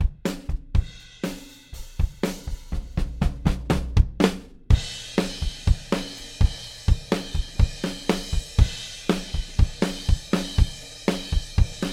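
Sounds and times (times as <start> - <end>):
drums playing in a recording session: 0.0 - 11.9.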